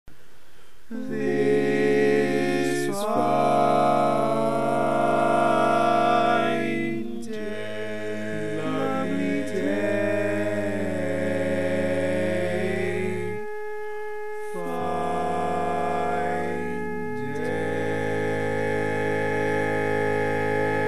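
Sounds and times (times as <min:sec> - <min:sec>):
barbershop baritone singing: 0:00.9 - 0:13.4, 0:14.5 - 0:20.7.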